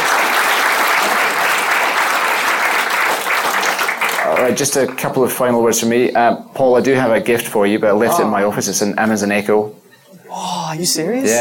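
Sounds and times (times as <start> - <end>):
audience applause: 0.0 - 5.2
speech: 4.4 - 11.3.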